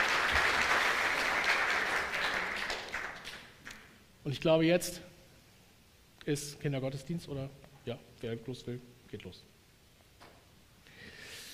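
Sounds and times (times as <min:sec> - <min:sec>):
audience applause: 0:00.0 - 0:03.5
speech: 0:04.2 - 0:05.1, 0:06.3 - 0:09.5.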